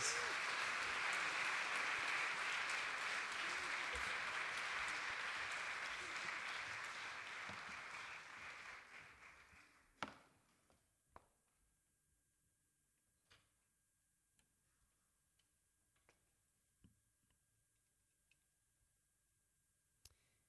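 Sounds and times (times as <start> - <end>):
crowd applause: 0.0 - 9.8.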